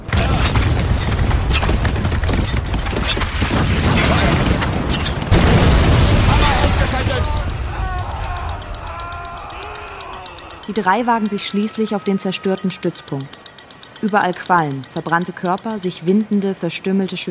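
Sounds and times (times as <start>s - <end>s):
white phosphorus artillery firing and exploding: 0.0s - 7.2s
crackling bursts: 0.0s - 10.6s
faint shouting voices: 6.3s - 16.2s
speech: 10.7s - 13.4s, 14.0s - 17.2s.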